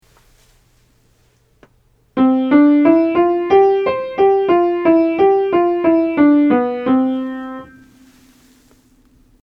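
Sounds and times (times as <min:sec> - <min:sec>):
major scales being played: 0:02.2 - 0:08.6.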